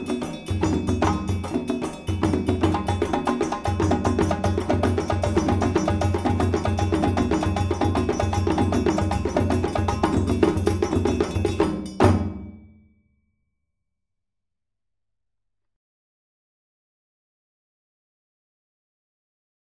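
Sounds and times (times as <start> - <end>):
fast full djembe solo: 0.0 - 12.6.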